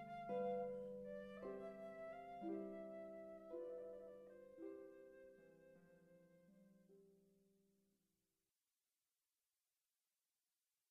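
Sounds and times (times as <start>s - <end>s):
flute: 0.0s - 7.1s
harp: 0.0s - 7.3s.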